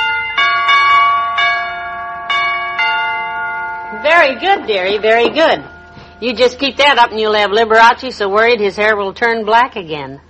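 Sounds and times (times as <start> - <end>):
electric door chimes ringing: 0.0 - 7.8
speech: 4.0 - 10.2.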